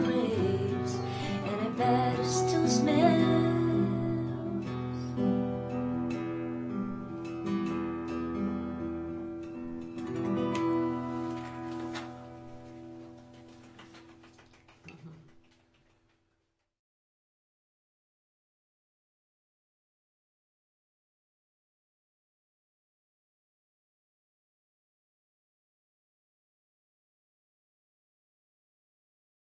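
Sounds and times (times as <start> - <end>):
acoustic music: 0.0 - 15.4.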